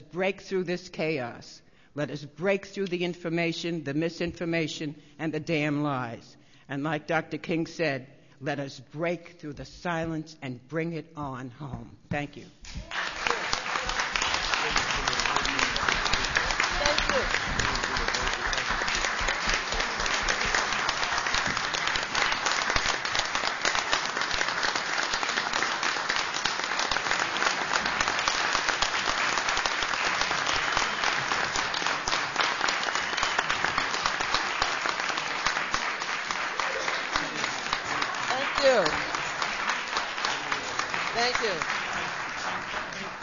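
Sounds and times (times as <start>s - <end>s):
speech: 0.1s - 13.0s
large audience applause: 12.7s - 43.2s.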